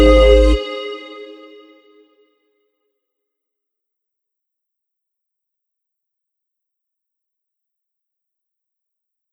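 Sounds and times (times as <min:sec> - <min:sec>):
sine wave tone: 0:00.0 - 0:01.7.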